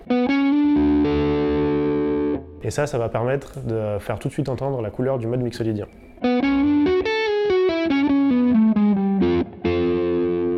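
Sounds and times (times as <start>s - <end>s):
distorted electric guitar playing D major triad: 0.1s - 2.6s, 6.2s - 10.5s
speech: 2.6s - 6.3s.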